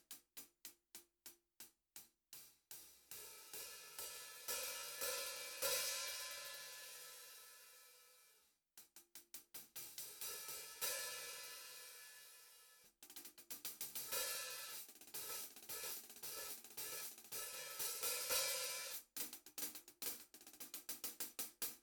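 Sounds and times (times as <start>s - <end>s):
hi-hat hit: 2.4s - 21.6s.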